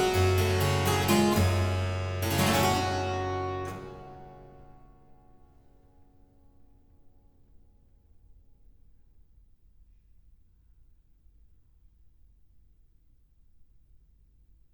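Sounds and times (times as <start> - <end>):
harpsichord gigue in G minor: 0.0 - 4.8.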